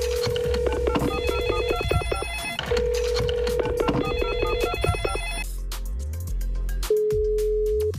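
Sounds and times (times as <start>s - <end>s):
low bass-heavy music bed: 0.0s - 7.9s
telephone ringing: 0.2s - 5.4s.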